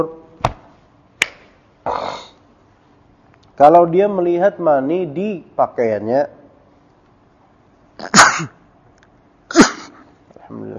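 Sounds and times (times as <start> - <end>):
person sneezing: 1.8 - 2.4, 8.0 - 8.6, 9.5 - 10.2
speech: 3.6 - 6.4, 8.0 - 8.6, 10.5 - 10.7.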